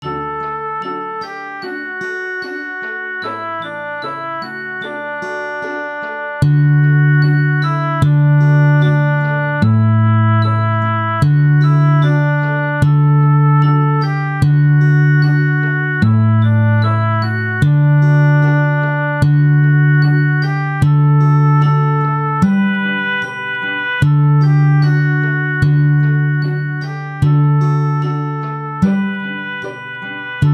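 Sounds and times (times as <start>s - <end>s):
lullaby on guitar: 0.1s - 30.5s.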